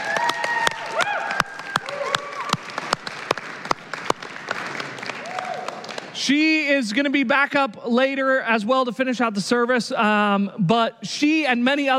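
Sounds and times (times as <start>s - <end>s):
audience applause: 0.0s - 6.2s
speech: 6.3s - 11.9s.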